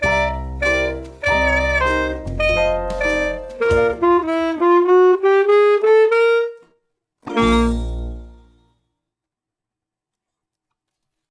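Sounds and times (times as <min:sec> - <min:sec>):
saxophone: 0:00.0 - 0:08.6.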